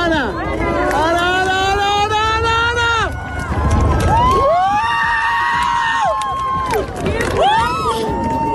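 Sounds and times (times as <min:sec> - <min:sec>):
crowd of spectators cheering at total eclipse: 0:00.2 - 0:08.5.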